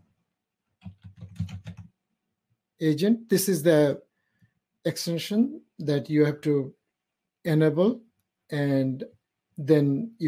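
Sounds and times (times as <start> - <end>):
typing on a computer keyboard while entering a search in Azure Data Studio: 0.8 - 1.9
speech: 2.8 - 4.1, 4.8 - 6.8, 7.4 - 10.2.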